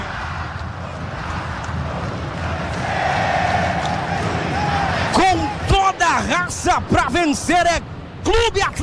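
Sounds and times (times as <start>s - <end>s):
football supporters singing in stadium: 0.0s - 6.9s
speech: 6.4s - 8.8s.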